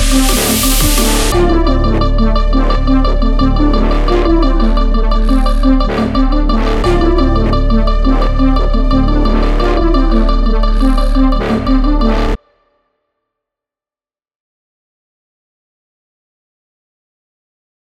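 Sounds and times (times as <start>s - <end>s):
EDM pop music: 0.0s - 12.4s.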